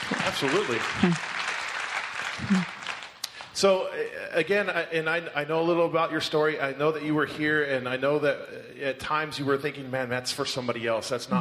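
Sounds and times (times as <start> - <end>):
audience applause: 0.0 - 3.6
speech: 0.4 - 1.4, 2.4 - 2.8, 3.6 - 11.3.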